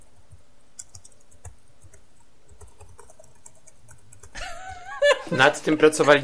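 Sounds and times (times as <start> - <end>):
Toshiba laptop keys clicking: 0.8 - 4.4
laughter: 4.4 - 6.0
speech: 5.3 - 6.2.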